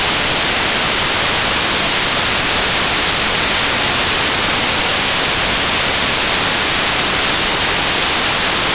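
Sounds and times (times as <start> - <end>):
noise: 0.0 - 8.7.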